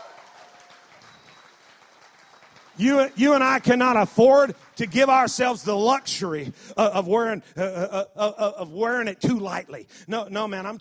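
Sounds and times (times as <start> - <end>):
audience clapping: 0.0 - 6.4
speech: 2.8 - 10.7.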